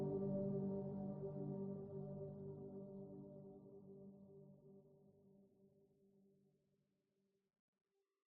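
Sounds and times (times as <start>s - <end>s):
ambient music: 0.0s - 4.6s.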